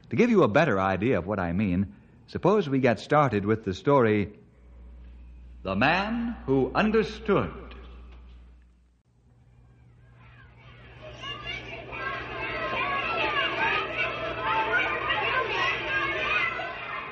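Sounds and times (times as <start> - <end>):
low steady hum: 0.0 - 17.0
speech: 0.1 - 4.4, 5.6 - 7.6
children shouting and laughing: 9.5 - 17.0.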